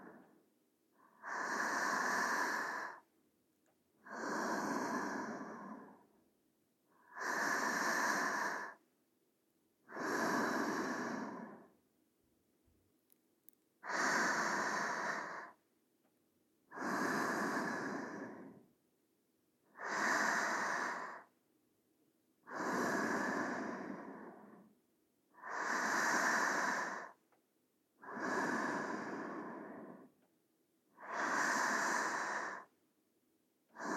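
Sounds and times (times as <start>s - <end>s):
sleeping breathing: 1.0s - 3.1s, 4.0s - 6.2s, 7.0s - 8.8s, 9.8s - 11.8s, 13.8s - 15.6s, 16.7s - 18.7s, 19.7s - 21.3s, 22.4s - 24.7s, 25.3s - 27.2s, 28.0s - 30.3s, 30.9s - 32.7s, 33.7s - 33.9s.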